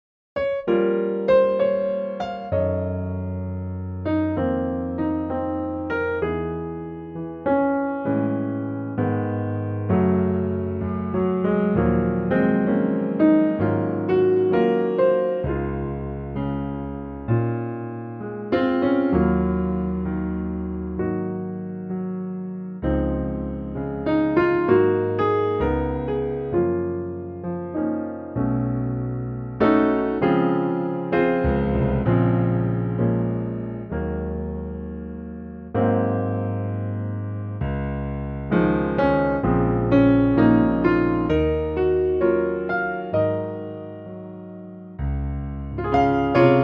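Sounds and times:
piano: 0.4s - 46.6s.

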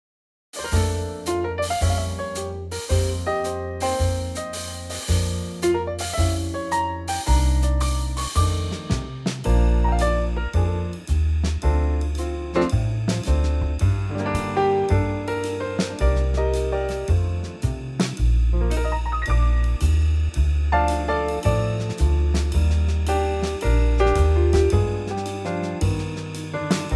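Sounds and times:
instrumental trio in B-flat: 0.6s - 26.9s.

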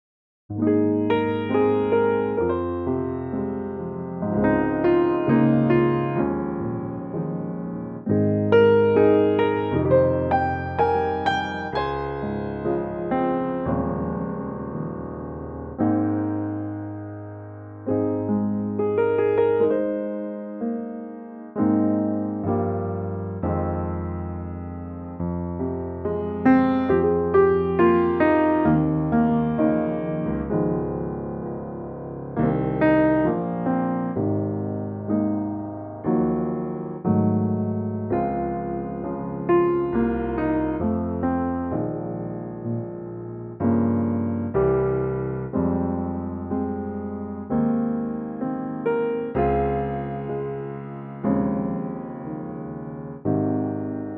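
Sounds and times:
piano in A-flat: 0.5s - 54.1s.

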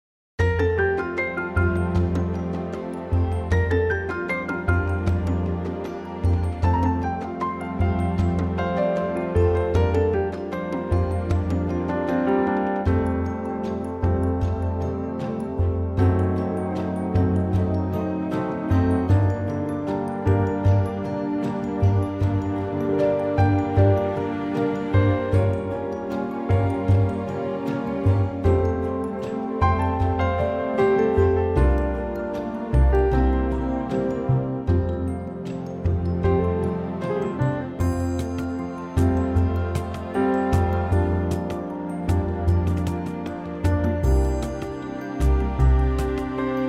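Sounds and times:
orchestral music: 0.4s - 46.6s.

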